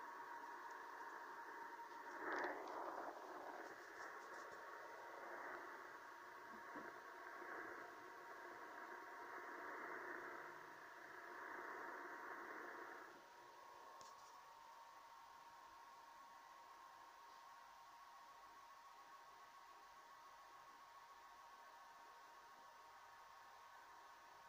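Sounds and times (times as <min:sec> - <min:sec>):
NavTex maritime data signal over a Tecsun PL-880 radio at 519 kHz: 0:00.0 - 0:14.5
fainter hum: 0:00.0 - 0:24.4
radio static hiss: 0:00.0 - 0:24.4.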